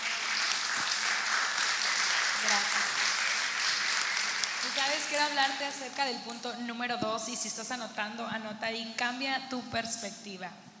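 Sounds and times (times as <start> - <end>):
audience applause: 0.0 - 5.3
speech: 4.9 - 10.7.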